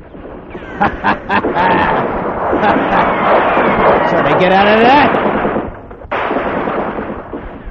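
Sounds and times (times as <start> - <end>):
machine gun fire sound effect in a radio drama: 0.0 - 7.6
laughter: 0.6 - 3.4
speech: 0.8 - 5.3.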